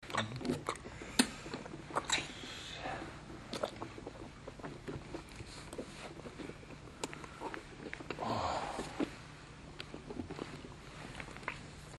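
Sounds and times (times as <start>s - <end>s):
sucking: 0.0s - 11.7s
person moaning: 8.2s - 9.0s.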